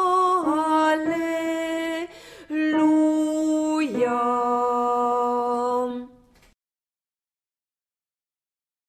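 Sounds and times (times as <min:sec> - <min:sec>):
alto choral voice singing: 0:00.0 - 0:06.2.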